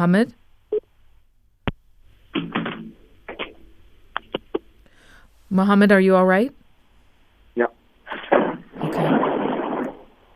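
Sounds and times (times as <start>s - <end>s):
speech: 0.0s - 0.4s, 5.5s - 6.6s, 7.6s - 7.8s
bomb explosion over a phone-like line: 8.1s - 10.2s.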